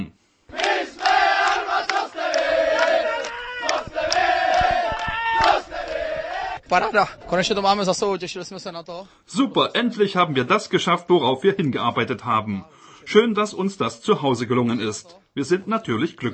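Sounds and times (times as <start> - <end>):
team of men cheering and chanting in a dressing room: 0.5 - 7.9
rhythmic whooping: 0.5 - 8.1
speech: 6.7 - 16.3.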